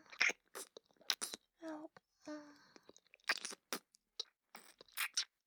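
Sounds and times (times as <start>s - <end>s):
ear licking sounds: 0.1s - 1.4s, 2.9s - 5.3s.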